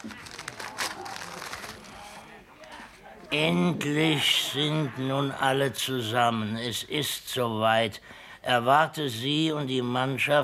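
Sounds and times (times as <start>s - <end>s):
paper letter being unfolded: 0.0s - 3.0s
speech: 3.3s - 10.4s.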